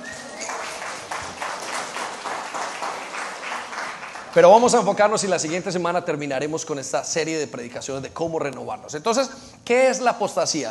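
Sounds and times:
audience applause: 0.0 - 4.8
speech: 4.4 - 10.6.

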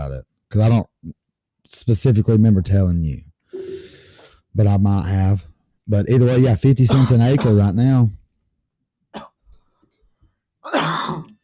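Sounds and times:
speech: 0.5 - 3.3, 4.5 - 8.2
person coughing after a drink went down the wrong pipe: 6.9 - 7.8, 9.1 - 9.4, 10.6 - 11.4.

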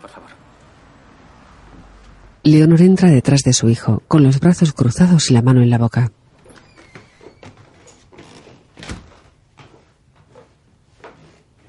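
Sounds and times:
speech: 2.4 - 6.2
door being shut: 6.4 - 9.4.

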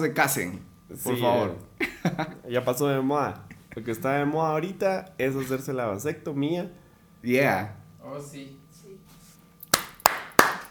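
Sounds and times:
speech: 0.0 - 8.6
hand claps: 9.6 - 10.6.

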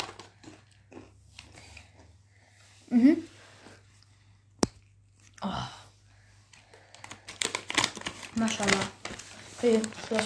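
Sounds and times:
speech: 2.9 - 3.3, 8.5 - 9.0, 9.6 - 10.2
bar of hard chocolate being snapped apart: 4.6 - 5.4, 6.5 - 8.3.

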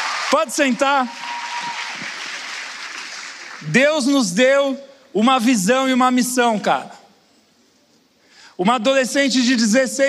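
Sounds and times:
crowd applauding: 0.0 - 3.8
speech: 0.3 - 1.3, 3.6 - 7.0, 8.6 - 10.0.

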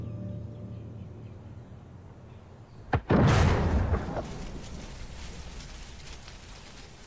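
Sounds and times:
castle gun firing at Edinburgh Castle: 2.9 - 4.9.

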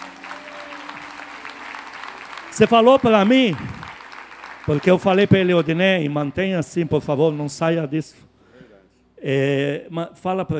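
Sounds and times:
audience applause: 0.0 - 7.3
speech: 2.6 - 3.8, 4.7 - 8.3, 9.2 - 10.5.

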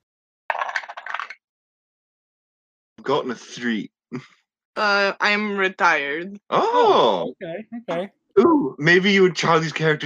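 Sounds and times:
dice rolling: 0.5 - 1.4
speech: 3.0 - 10.0.

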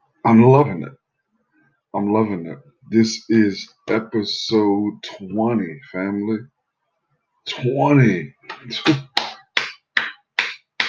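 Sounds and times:
speech: 0.2 - 1.0, 2.0 - 6.5, 7.4 - 9.1
person clapping hands: 8.5 - 10.8.

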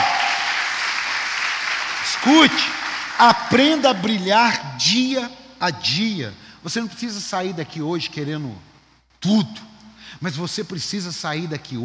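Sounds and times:
audience applause: 0.0 - 3.3
speech: 2.2 - 11.8.

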